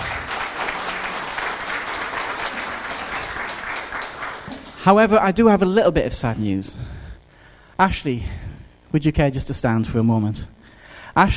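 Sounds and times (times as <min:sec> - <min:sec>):
people clapping: 0:00.0 - 0:05.1
speech: 0:04.8 - 0:07.0, 0:07.8 - 0:10.6, 0:11.2 - 0:11.3.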